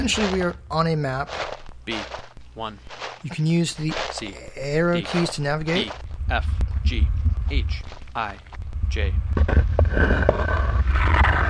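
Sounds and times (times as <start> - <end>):
speech: 0.0 - 11.2
video game map edge border sound: 5.0 - 11.4.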